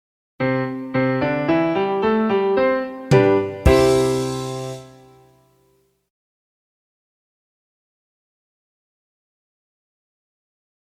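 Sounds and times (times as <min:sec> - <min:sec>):
C major music: 0:00.4 - 0:05.6.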